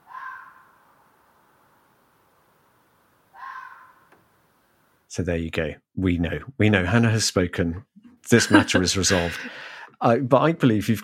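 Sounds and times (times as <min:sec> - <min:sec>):
fox calls: 0:00.0 - 0:00.8, 0:03.3 - 0:04.1
speech: 0:05.1 - 0:11.0
laughter: 0:08.3 - 0:09.8.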